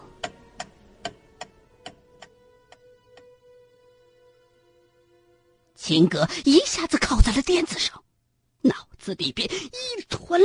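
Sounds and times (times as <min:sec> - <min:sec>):
clock ticking: 0:00.0 - 0:03.3
speech: 0:05.9 - 0:08.0, 0:08.6 - 0:10.4.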